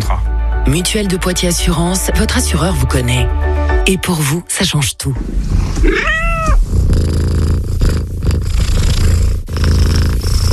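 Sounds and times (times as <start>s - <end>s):
speech: 0.7s - 7.4s
low rumbling purr: 5.2s - 10.5s
cat meowing: 5.8s - 6.6s.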